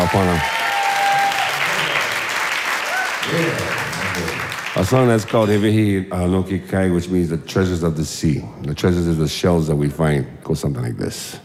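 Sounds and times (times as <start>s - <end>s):
speech: 0.0s - 0.6s, 3.3s - 11.4s
audience applause: 0.0s - 5.7s.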